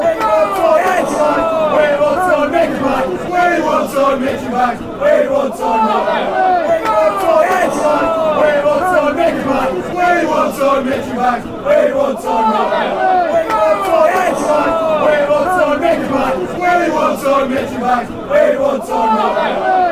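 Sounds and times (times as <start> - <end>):
laughter: 0.0 - 19.7
football crowd chanting: 0.0 - 19.9.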